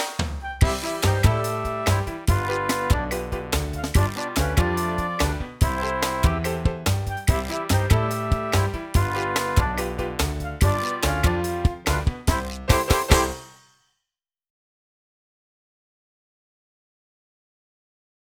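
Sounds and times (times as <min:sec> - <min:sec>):
saxophone: 0:00.4 - 0:13.4.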